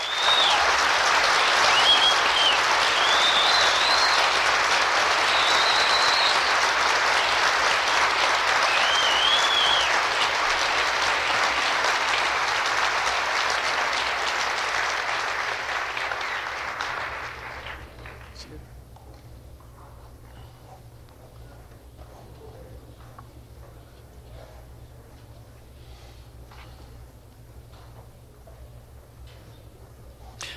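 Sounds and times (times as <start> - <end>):
whistles: 0.0 - 0.8, 1.4 - 6.8, 8.6 - 10.1
audience applauding graduates at ceremony: 0.0 - 18.6.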